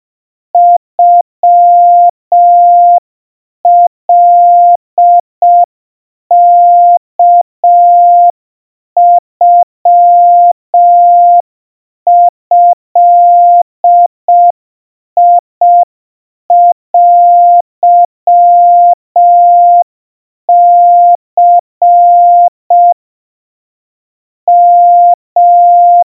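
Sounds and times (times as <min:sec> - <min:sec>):
700 Hz Morse code tones: 0:00.6 - 0:03.0, 0:03.7 - 0:05.7, 0:06.3 - 0:08.4, 0:09.0 - 0:11.4, 0:12.1 - 0:14.6, 0:15.2 - 0:15.9, 0:16.5 - 0:19.9, 0:20.5 - 0:23.0, 0:24.5 - 0:26.0.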